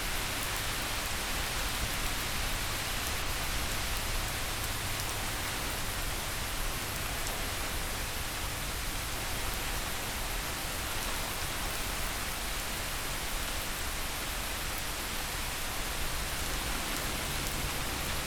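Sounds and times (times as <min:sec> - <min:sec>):
relaxing rain: 0:00.0 - 0:18.2.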